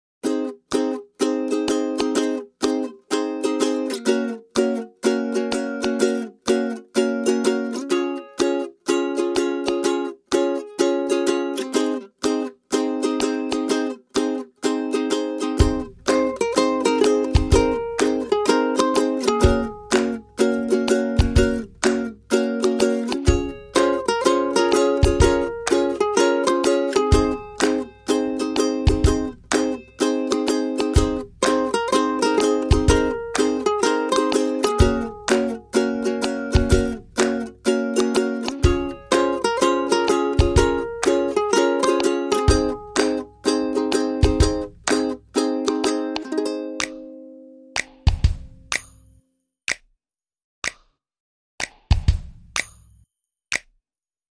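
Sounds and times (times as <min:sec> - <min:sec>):
ukuleles: 0:00.2 - 0:49.0
drums: 0:17.4 - 0:17.8, 0:28.9 - 0:29.4, 0:38.6 - 0:38.9, 0:48.0 - 0:48.9, 0:51.9 - 0:52.7.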